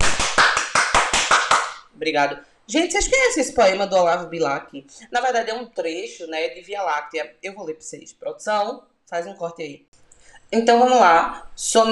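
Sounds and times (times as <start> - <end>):
person clapping: 0.0 - 1.9
speech: 2.0 - 11.8.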